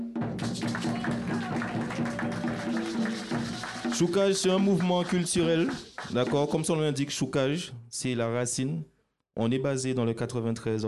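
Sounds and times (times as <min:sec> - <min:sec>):
crowd applauding: 0:00.3 - 0:06.7
speech: 0:04.0 - 0:10.8.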